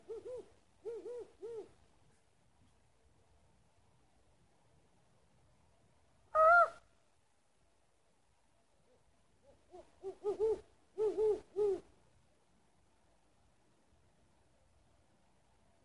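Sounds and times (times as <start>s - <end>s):
owl hooting: 0.0s - 1.8s, 6.3s - 6.9s, 9.5s - 11.9s.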